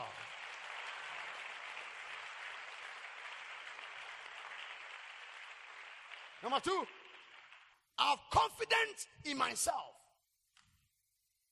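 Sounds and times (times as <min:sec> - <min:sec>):
audience clapping hands: 0:00.0 - 0:08.5
speech: 0:06.4 - 0:07.0, 0:08.0 - 0:10.0.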